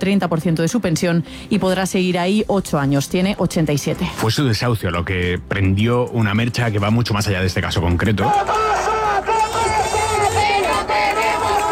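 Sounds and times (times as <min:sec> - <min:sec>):
speech: 0:00.0 - 0:09.6
housing protest in Málaga: 0:08.2 - 0:11.7.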